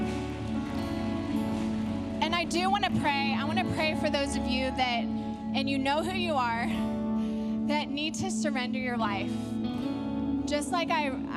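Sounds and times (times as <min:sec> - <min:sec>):
audience clapping: 0:00.0 - 0:02.4
speech: 0:02.3 - 0:06.9, 0:07.7 - 0:09.6, 0:10.5 - 0:11.3.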